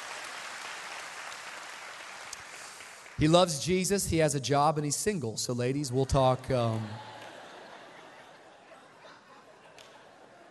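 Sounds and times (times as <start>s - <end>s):
audience applause: 0.0s - 3.2s, 6.0s - 8.0s
speech: 3.2s - 7.1s
laughter: 5.6s - 10.4s.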